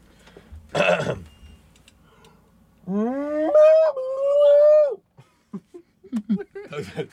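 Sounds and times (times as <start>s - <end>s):
person imitating cow mooing: 2.8s - 4.2s
laughter: 5.2s - 7.1s.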